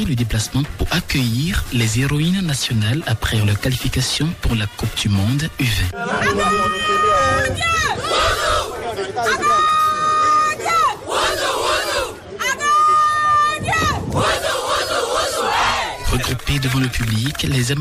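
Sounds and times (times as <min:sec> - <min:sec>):
speech: 0:00.0 - 0:09.8, 0:16.5 - 0:17.7
crowd noise of supporters: 0:00.0 - 0:17.7
women's football team shouting their battle cry: 0:06.1 - 0:16.0.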